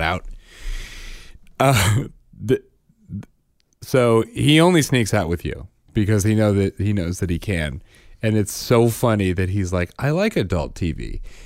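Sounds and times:
talk: 0.0 - 0.2, 1.6 - 11.2
throat clearing from a tickle in the throat: 1.6 - 3.3
speech: 1.6 - 11.4.

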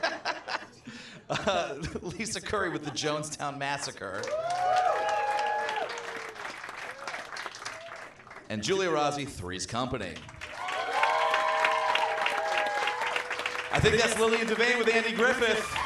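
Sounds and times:
laughter: 0.0 - 3.4, 13.4 - 15.8
speech: 1.3 - 4.8, 8.5 - 10.3, 13.8 - 15.8
audience applause: 4.2 - 8.9, 10.3 - 15.8.

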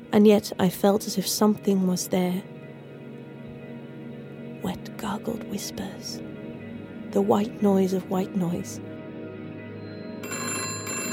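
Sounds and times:
speech: 0.1 - 2.5, 5.2 - 6.4, 7.1 - 8.9
telephone bell ringing: 10.1 - 11.1.

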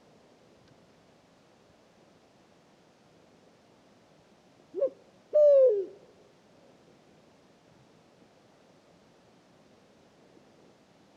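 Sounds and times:
pharaoh eagle-owl hooting: 4.8 - 6.0.

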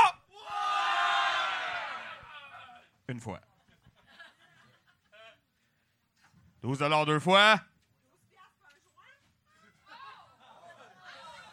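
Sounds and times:
audience yelling back at auctioneer: 0.0 - 2.9
laughter: 2.1 - 5.8, 9.9 - 11.5
speech: 3.1 - 3.5, 6.6 - 7.7.

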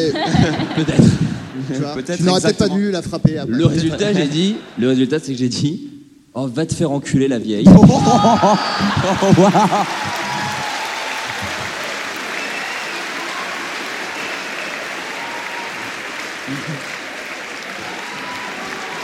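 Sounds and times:
laughter: 0.0 - 2.6, 7.7 - 12.6, 16.2 - 17.2
speech: 0.0 - 10.2, 16.5 - 16.9
audience clapping: 8.3 - 19.0.

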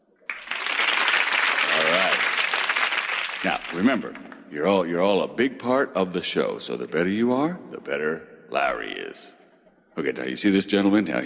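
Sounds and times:
studio audience applause: 0.1 - 4.4
speech: 3.4 - 9.4, 10.0 - 11.2.

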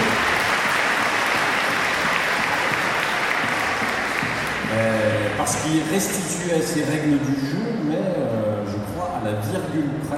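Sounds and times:
audience applause: 0.0 - 6.2
speech: 5.5 - 8.0, 9.3 - 10.1.

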